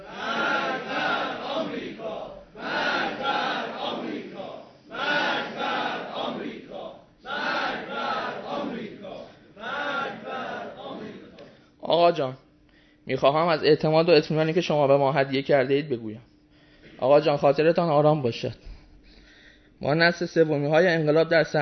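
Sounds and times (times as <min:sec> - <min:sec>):
crowd chanting a protest slogan: 0:00.0 - 0:11.4
speech: 0:12.1 - 0:12.4, 0:13.0 - 0:16.3, 0:17.0 - 0:18.7, 0:19.8 - 0:21.6.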